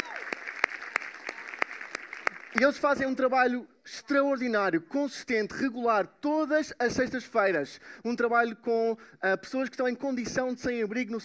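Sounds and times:
church congregation applauding a volunteer street-outreach team: 0.0s - 3.1s
speech: 2.6s - 11.2s.

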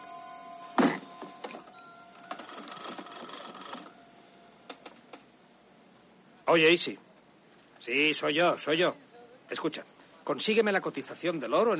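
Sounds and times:
telephone number being dialed: 2.3s - 3.9s
speech: 6.5s - 7.0s, 7.8s - 11.7s.

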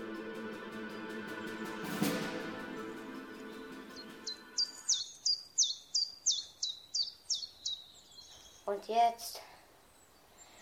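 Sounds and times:
steady outdoor hiss: 0.0s - 10.5s
bird chirping: 3.3s - 8.9s
speech: 8.7s - 9.4s.

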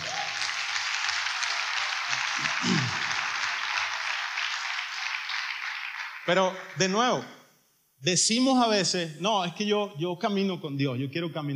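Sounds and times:
audience applause: 0.0s - 6.8s
speech: 6.3s - 7.4s, 8.0s - 11.5s.

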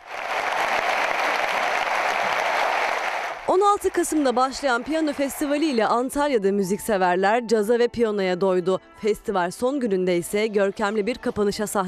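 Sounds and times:
standing ovation applause at piano concert: 0.0s - 5.8s
speech: 3.5s - 11.8s.

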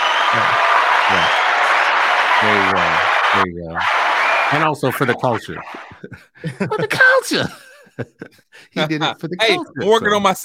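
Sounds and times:
applause from a crowd: 0.0s - 7.0s
laughter: 2.4s - 10.4s
speech: 3.4s - 10.4s.

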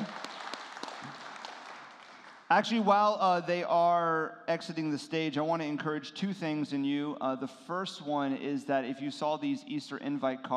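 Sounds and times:
audience applause for the band: 0.0s - 2.6s
speech: 2.5s - 10.5s.

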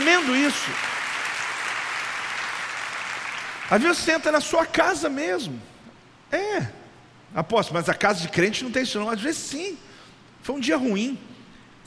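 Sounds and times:
audience applause: 0.0s - 3.9s
speech: 0.5s - 1.0s, 3.7s - 5.7s, 6.3s - 11.3s.

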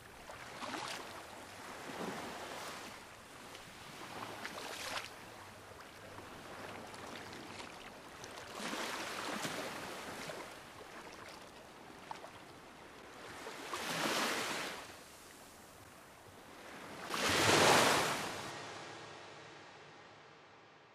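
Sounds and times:
waves washing in off Phú Quốc: 0.0s - 11.2s, 13.0s - 20.5s
loud wave crash: 17.1s - 20.8s.

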